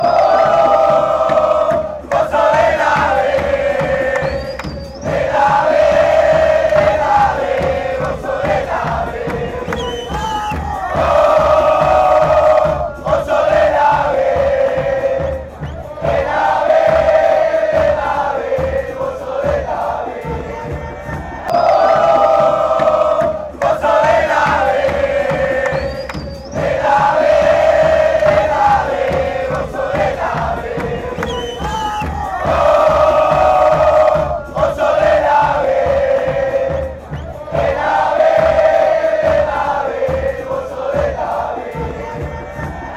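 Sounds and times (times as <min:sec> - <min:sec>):
people chanting: 0:00.0 - 0:42.9.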